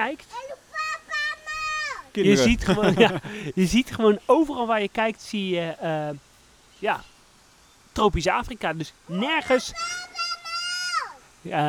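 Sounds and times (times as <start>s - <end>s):
speech: 0.0s - 0.5s, 2.1s - 7.1s, 8.0s - 10.2s, 11.4s - 11.6s
children screaming at a zoo: 0.7s - 2.5s, 9.1s - 11.3s
laughter: 2.2s - 3.7s.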